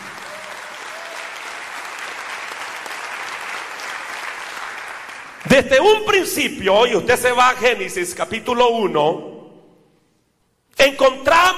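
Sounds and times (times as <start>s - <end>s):
audience applause: 0.0s - 5.5s
speech: 5.4s - 9.3s.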